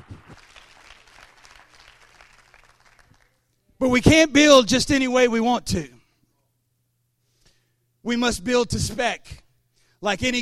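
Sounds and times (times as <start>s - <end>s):
audience clapping hands: 0.0s - 3.6s
speech: 3.8s - 5.9s, 8.1s - 9.4s, 10.0s - 10.4s.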